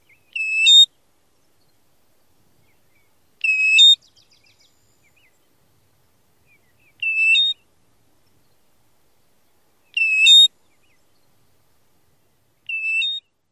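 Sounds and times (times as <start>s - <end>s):
American Golden-Plover ko-Wee calls: 0.0s - 1.0s, 2.6s - 5.6s, 6.4s - 7.7s, 9.8s - 11.4s, 12.6s - 13.4s.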